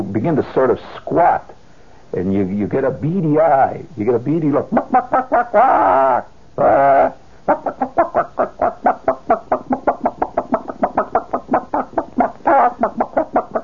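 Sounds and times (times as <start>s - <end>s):
speech: 0.0s - 8.4s
man imitating a chicken pecking at gravel: 4.6s - 13.6s.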